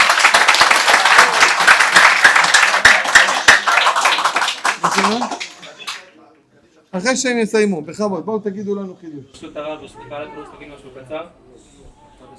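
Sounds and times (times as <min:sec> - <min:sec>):
audience applause: 0:00.0 - 0:06.0
speech: 0:07.0 - 0:11.7.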